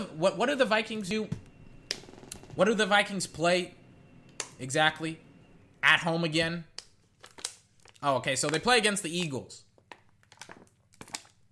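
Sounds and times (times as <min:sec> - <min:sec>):
speech: 0:00.0 - 0:01.4, 0:02.6 - 0:03.8, 0:04.6 - 0:05.2, 0:05.8 - 0:06.7, 0:08.0 - 0:09.6
plastic water bottle crinkling: 0:07.2 - 0:11.5.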